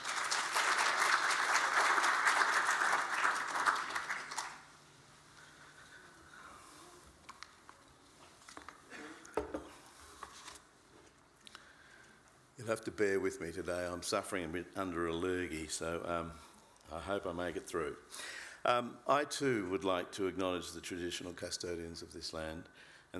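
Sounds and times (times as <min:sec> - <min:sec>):
audience applause welcoming a speaker at a talk: 0:00.0 - 0:04.8
speech: 0:12.7 - 0:23.1.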